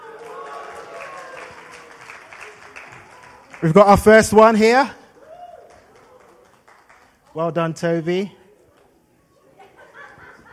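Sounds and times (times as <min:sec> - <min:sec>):
family cheering and clapping: 0:00.0 - 0:07.4
speech: 0:03.6 - 0:05.0, 0:07.4 - 0:08.4
laughter: 0:09.3 - 0:10.5.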